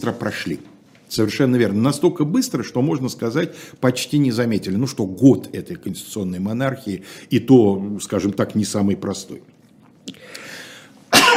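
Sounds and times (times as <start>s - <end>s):
speech: 0.0s - 10.4s
breathy inhale: 7.0s - 7.3s, 10.1s - 11.0s
person coughing: 11.1s - 11.3s.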